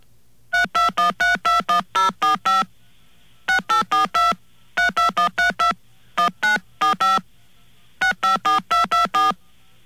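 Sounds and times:
faint hum: 0.0 - 9.8
touch-tone phone keypad tones playing a tune: 0.6 - 2.7, 3.5 - 7.2, 8.0 - 9.4.

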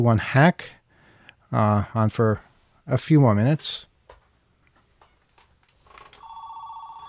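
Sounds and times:
speech: 0.0 - 0.8, 1.5 - 3.9
telephone ringing: 5.9 - 7.0.

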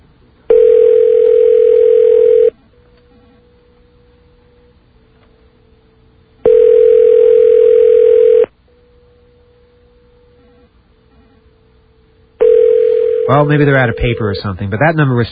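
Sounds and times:
telephone ringback tone calling a fax machine: 0.5 - 2.6, 6.4 - 8.5, 12.4 - 14.6
speech: 13.3 - 15.3.

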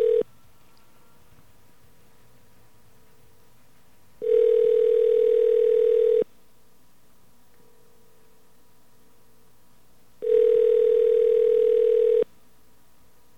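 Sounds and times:
phone line ringing unanswered: 0.0 - 0.3, 4.2 - 6.2, 10.2 - 12.3.

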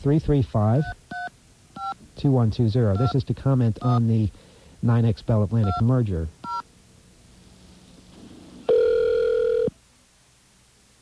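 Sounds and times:
speech: 0.0 - 1.0, 2.2 - 6.4
telephone dialing and ringing: 8.7 - 9.7.

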